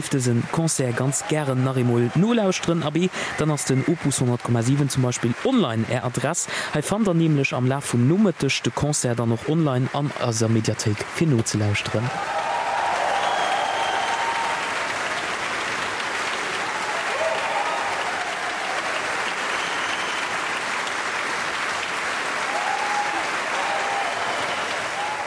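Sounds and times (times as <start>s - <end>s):
speech: 0.0s - 12.4s
concert hall audience applause: 0.0s - 25.2s
cheers and whistles: 0.9s - 4.4s, 12.1s - 15.3s, 16.5s - 20.7s, 22.4s - 25.2s.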